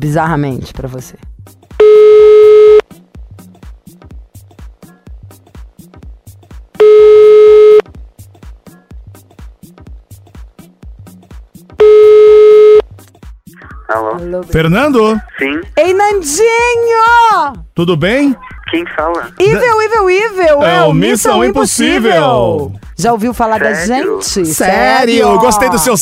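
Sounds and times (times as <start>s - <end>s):
speech: 0.0s - 2.2s, 14.2s - 26.0s
telephone ringback tones: 1.8s - 2.8s, 6.8s - 7.9s, 11.8s - 12.8s.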